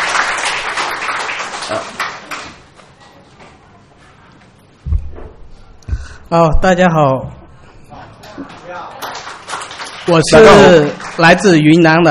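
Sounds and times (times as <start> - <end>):
crowd applause: 0.0 - 2.6, 8.5 - 11.6
speech: 1.7 - 2.0, 6.3 - 7.4, 10.1 - 12.1
low thump: 4.8 - 6.7.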